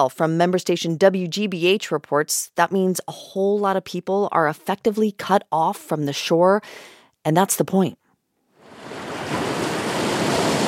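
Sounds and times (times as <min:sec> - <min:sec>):
speech: 0:00.0 - 0:08.0
ocean waves at a waterfront park in a coastal city: 0:08.6 - 0:10.6.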